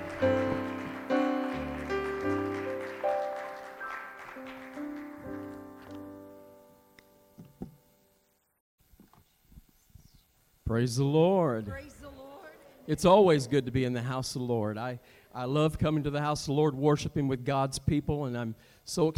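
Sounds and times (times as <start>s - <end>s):
audience clapping: 0.0s - 6.0s
loud sustained organ chords: 0.0s - 8.5s
speech: 10.7s - 12.0s, 12.9s - 19.1s.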